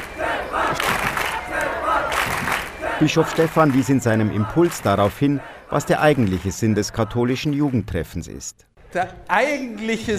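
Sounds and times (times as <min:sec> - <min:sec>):
more than 2000 young people cheering and shouting to greet an arriving bishop: 0:00.0 - 0:07.8
speech: 0:03.0 - 0:10.1.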